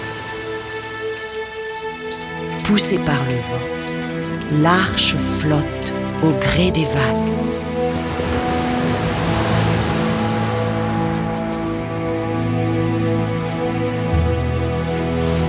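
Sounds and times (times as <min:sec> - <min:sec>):
heavy rain pouring down: 0:00.0 - 0:15.4
speech: 0:02.7 - 0:03.8, 0:04.5 - 0:08.2
low sustained tonal drone: 0:03.6 - 0:15.4.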